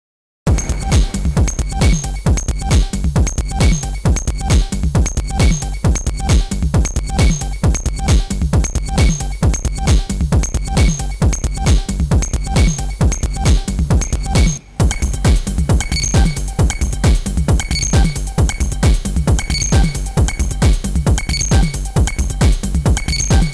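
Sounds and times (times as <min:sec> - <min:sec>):
music loop mix: 0:00.5 - 0:23.5.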